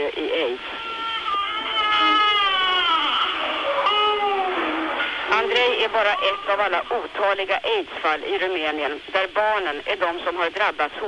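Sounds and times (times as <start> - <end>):
infant crying: 0.4 - 6.6
speech: 5.5 - 11.0.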